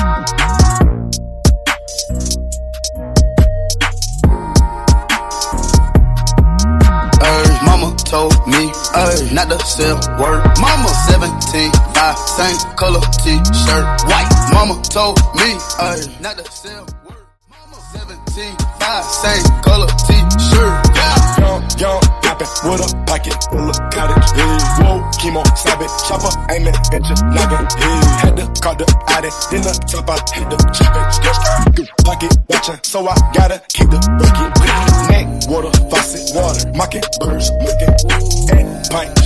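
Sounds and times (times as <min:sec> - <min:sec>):
drill music beat: 0:00.0 - 0:39.2.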